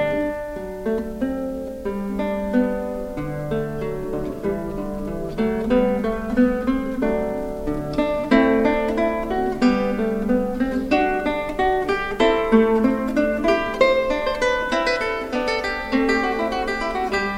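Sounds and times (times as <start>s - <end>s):
lute solo: 0.0s - 17.3s.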